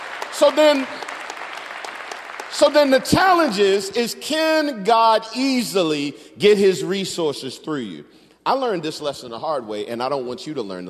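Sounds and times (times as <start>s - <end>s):
audience applause: 0.0s - 3.5s
speech: 0.4s - 1.0s, 2.5s - 10.8s.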